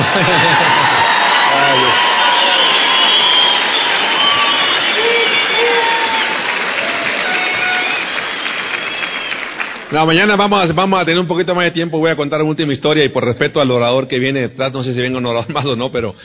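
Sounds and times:
laughter: 0.0s - 1.5s
shouts and whoops: 0.0s - 9.4s
audience applauding: 0.0s - 10.6s
speech: 9.9s - 16.2s.

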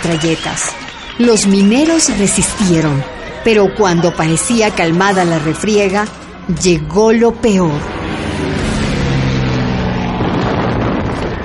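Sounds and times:
speech: 0.0s - 8.5s
military aircraft diving overhead: 6.0s - 11.4s.

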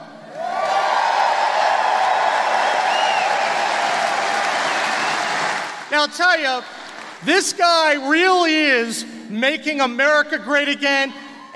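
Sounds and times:
rally crowd cheering and shouting: 0.3s - 5.9s
rally crowd applauding: 0.3s - 7.3s
speech: 6.0s - 11.5s.

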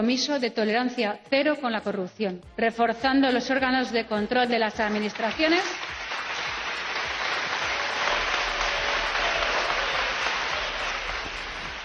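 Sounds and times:
speech: 0.0s - 5.9s
parliamentary opposition applauding: 4.6s - 11.8s.

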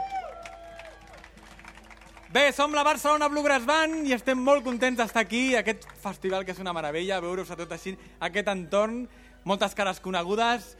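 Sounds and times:
audience applause: 0.0s - 6.7s
speech: 2.3s - 10.7s.

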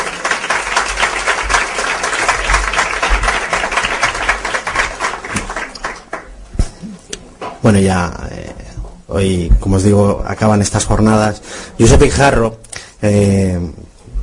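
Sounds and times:
audience applause: 0.0s - 6.9s
speech: 7.7s - 8.2s, 9.1s - 13.8s.

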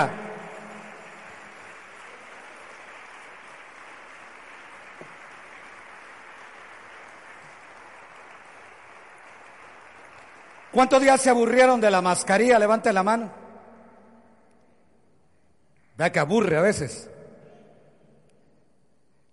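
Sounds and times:
speech: 0.0s - 0.2s, 10.8s - 13.4s, 16.0s - 17.1s
audience applause: 0.0s - 11.8s.

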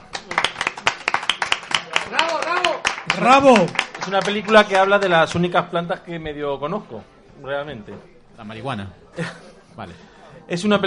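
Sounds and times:
applause: 0.0s - 5.4s
speech: 3.2s - 10.8s
laughter: 9.1s - 10.0s.

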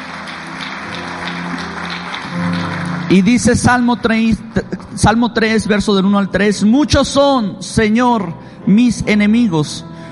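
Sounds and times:
audience applause: 0.0s - 4.0s
speech: 3.1s - 9.9s.

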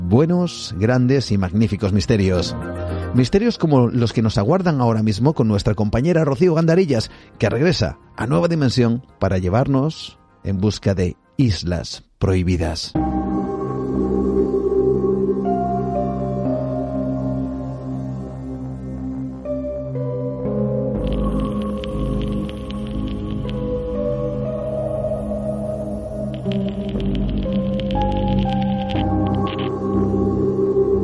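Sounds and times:
speech: 0.1s - 13.2s
radio show instrumental theme tune: 1.9s - 4.6s, 13.0s - 31.0s.

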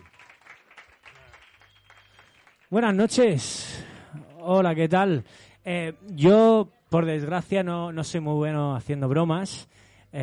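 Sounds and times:
audience applause: 0.0s - 3.0s
speech: 2.7s - 3.8s, 4.4s - 10.2s.

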